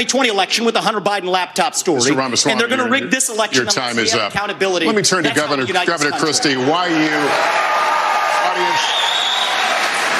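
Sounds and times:
speech: 0:00.0 - 0:08.0, 0:08.6 - 0:09.2
Republican presidential primary debate audience reacting noisily: 0:05.4 - 0:10.1.

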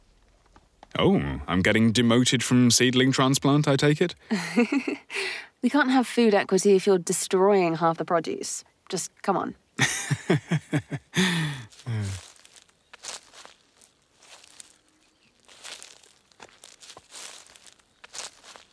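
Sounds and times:
speech: 0:01.0 - 0:12.2
laughter: 0:04.3 - 0:05.0, 0:09.8 - 0:12.2
footsteps of two people walking away from a farm's main plot: 0:09.8 - 0:18.7.

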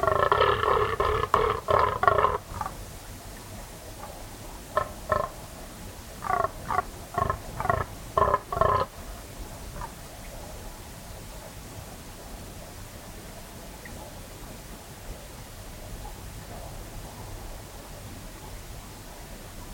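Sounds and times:
fallow deer groaning: 0:00.0 - 0:02.8, 0:06.2 - 0:08.9.

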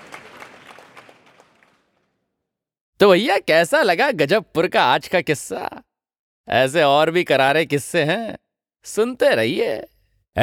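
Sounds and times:
crowd applauding: 0:00.0 - 0:02.3
speech: 0:03.0 - 0:10.4.

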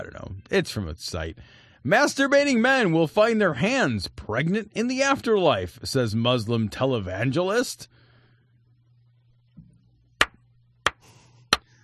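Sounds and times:
speech: 0:00.0 - 0:08.0
hand clapping: 0:10.2 - 0:11.7.

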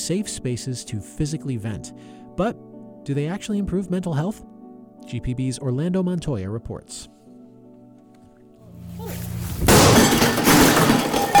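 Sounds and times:
speech: 0:00.0 - 0:07.2
glass and objects smashing in a rage room: 0:09.0 - 0:11.3.

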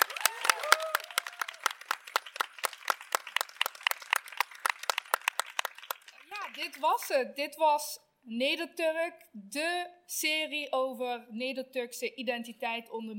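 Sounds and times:
live audience applause: 0:00.0 - 0:07.2
speech: 0:06.6 - 0:13.1.

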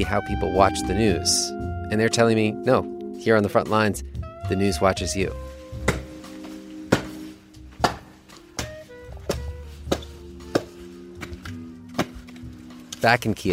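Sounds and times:
speech: 0:00.0 - 0:05.5, 0:13.0 - 0:13.5
small axe chopping wood: 0:05.8 - 0:12.5.

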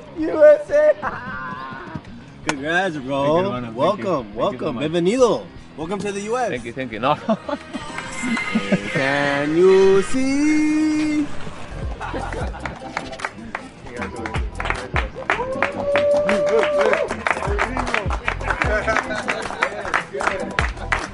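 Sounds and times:
speech: 0:00.2 - 0:01.4, 0:02.5 - 0:11.4
laughter: 0:07.1 - 0:09.0, 0:11.6 - 0:13.1, 0:18.3 - 0:20.1
applause: 0:12.6 - 0:21.1.

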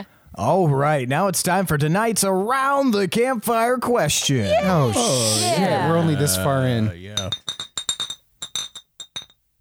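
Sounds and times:
speech: 0:00.4 - 0:07.4
glass bottles clinking: 0:07.2 - 0:09.5.

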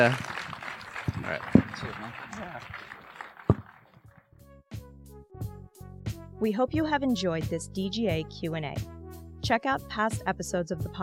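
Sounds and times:
speech: 0:00.0 - 0:00.3, 0:01.3 - 0:02.9, 0:06.4 - 0:11.0
audience applause: 0:00.0 - 0:04.1.

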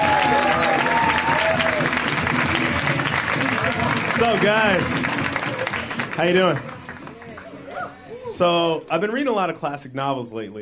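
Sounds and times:
audience applause for a comedian: 0:00.0 - 0:07.8
faint cheers and voices: 0:00.0 - 0:08.7
speech: 0:04.2 - 0:05.1, 0:06.2 - 0:06.7, 0:08.3 - 0:10.5.

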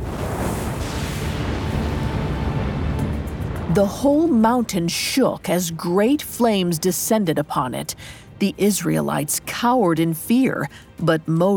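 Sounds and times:
thunder rumbling over a mountain: 0:00.0 - 0:05.5
speech: 0:03.8 - 0:11.5.

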